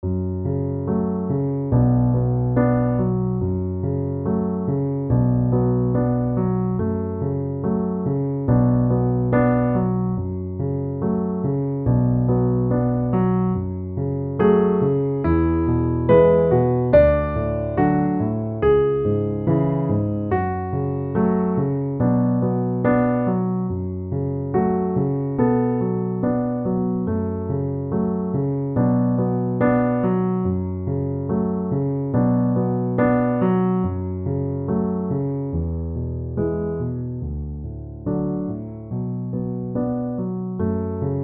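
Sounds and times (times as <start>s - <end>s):
piano: 0.0s - 41.2s.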